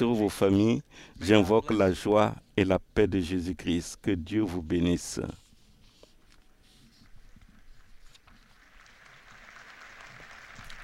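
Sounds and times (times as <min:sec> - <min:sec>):
speech: 0:00.0 - 0:05.4
pilgrims applauding: 0:08.5 - 0:10.8.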